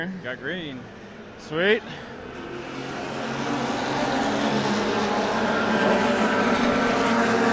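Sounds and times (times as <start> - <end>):
speech: 0.0 - 2.5
field of race cars starting the STL class race at Mid-Ohio: 0.0 - 7.5.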